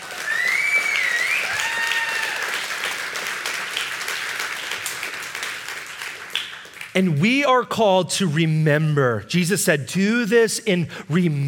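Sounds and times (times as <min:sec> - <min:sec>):
audience clapping hands: 0:00.0 - 0:07.6
speech: 0:07.0 - 0:11.4.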